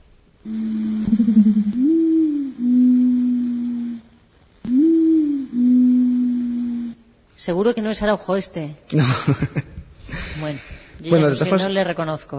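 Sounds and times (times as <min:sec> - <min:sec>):
speech: 0:00.4 - 0:00.8, 0:07.4 - 0:09.8, 0:10.4 - 0:12.3
reconstructed dodo call modeled on a pigeon: 0:00.4 - 0:07.0.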